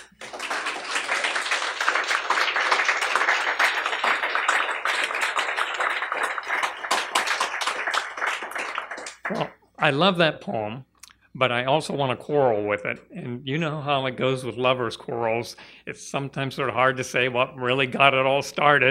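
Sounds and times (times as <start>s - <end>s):
audience clapping: 0.0s - 9.6s
speech: 9.3s - 18.8s.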